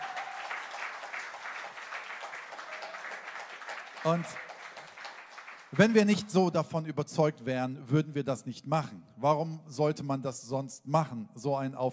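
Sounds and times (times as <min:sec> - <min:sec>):
audience applause: 0:00.0 - 0:06.2
speech: 0:04.0 - 0:04.5, 0:05.7 - 0:11.9.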